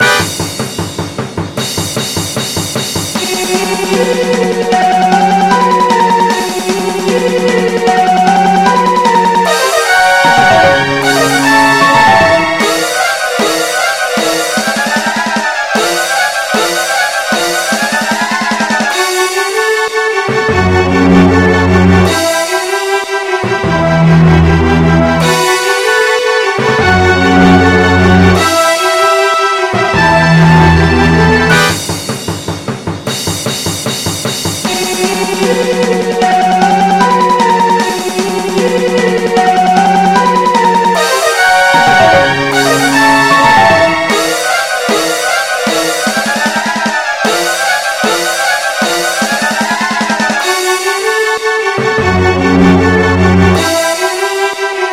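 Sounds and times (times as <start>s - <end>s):
MIDI boss battle music: 0.0s - 54.9s.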